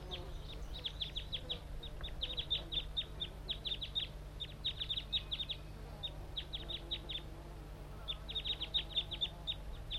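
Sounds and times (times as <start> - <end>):
wild bird calling: 0.0 - 9.9.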